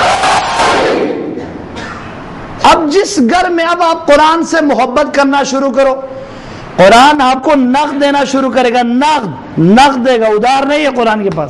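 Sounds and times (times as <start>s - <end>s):
crowd at a religious gathering shouting a slogan in unison: 0.0s - 1.4s
speech: 2.9s - 6.2s, 6.8s - 11.4s.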